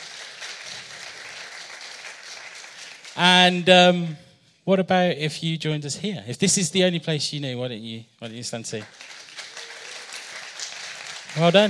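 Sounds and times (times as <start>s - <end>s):
audience applause: 0.0s - 3.2s, 8.8s - 11.6s
speech: 3.2s - 9.1s, 11.4s - 11.6s.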